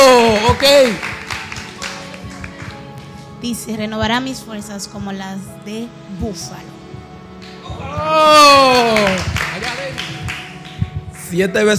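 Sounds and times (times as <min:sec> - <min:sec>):
audience applause: 0:00.0 - 0:02.8, 0:08.6 - 0:10.8
speech: 0:00.7 - 0:01.1, 0:03.4 - 0:06.8, 0:07.7 - 0:09.4, 0:11.3 - 0:11.7.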